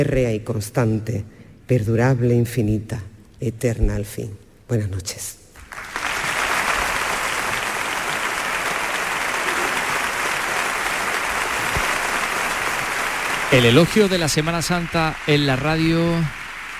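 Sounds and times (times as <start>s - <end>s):
speech: 0.0s - 5.4s, 13.5s - 16.4s
audience applause: 5.6s - 16.7s.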